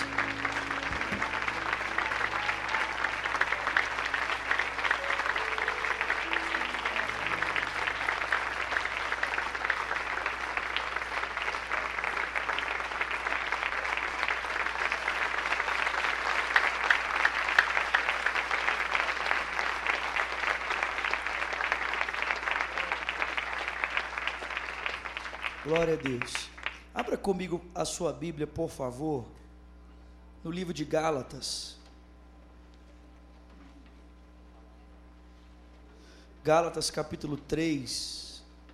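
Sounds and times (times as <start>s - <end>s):
audience applauding together: 0.0s - 27.2s
speech: 25.7s - 26.5s, 27.1s - 29.4s, 30.4s - 31.8s, 36.4s - 38.2s.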